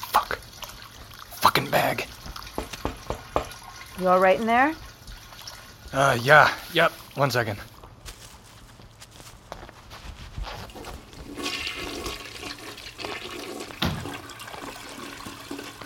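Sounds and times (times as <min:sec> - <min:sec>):
toilet flushing: 0:00.0 - 0:07.5, 0:10.7 - 0:15.8
speech: 0:01.5 - 0:02.2, 0:04.0 - 0:04.8, 0:05.9 - 0:07.7.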